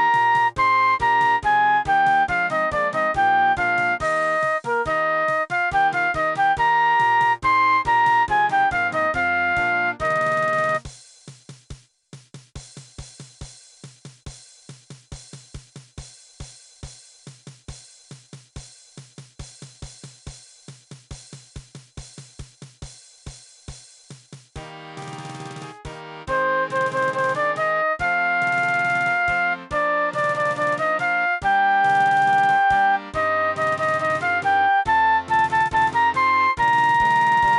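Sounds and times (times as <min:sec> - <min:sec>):
flute: 0:00.0 - 0:10.8, 0:25.0 - 0:37.5.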